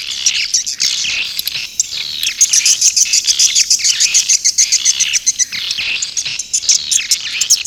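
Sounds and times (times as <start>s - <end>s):
swiftlet chirping calls: 1.1s - 7.6s
steady chirring: 1.2s - 7.0s.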